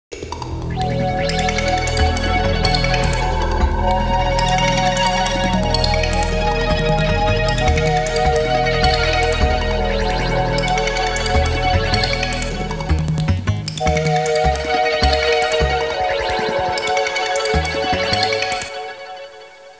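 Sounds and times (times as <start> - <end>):
electronic music: 0.2 - 19.7.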